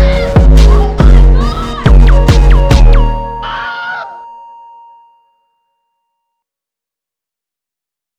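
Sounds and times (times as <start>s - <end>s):
beat being constructed: 0.0s - 3.6s.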